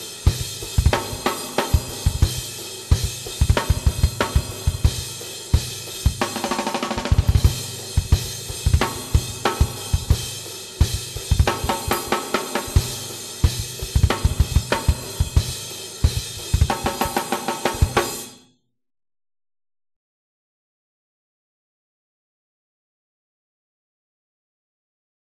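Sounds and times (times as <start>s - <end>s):
drums: 0.0s - 18.4s.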